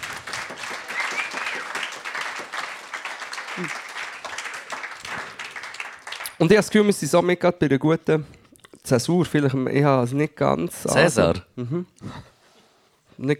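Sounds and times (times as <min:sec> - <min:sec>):
audience applause: 0:00.0 - 0:06.5
speech: 0:03.6 - 0:03.8, 0:06.4 - 0:12.2, 0:13.2 - 0:13.3.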